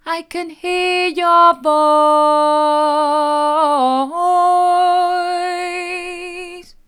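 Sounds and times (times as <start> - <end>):
person singing: 0.0 - 6.8.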